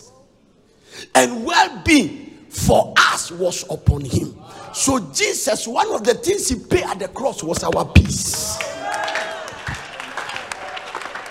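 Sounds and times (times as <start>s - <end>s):
speech: 1.2s - 8.8s
audience clapping: 7.7s - 11.2s
people shouting and cheering: 8.4s - 11.2s.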